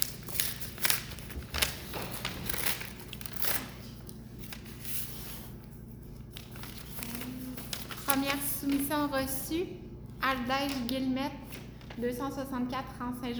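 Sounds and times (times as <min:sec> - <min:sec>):
sealed bid envelopes being torn open at a municipal meeting: 0:00.0 - 0:04.7, 0:06.3 - 0:08.9
speech: 0:08.1 - 0:13.3.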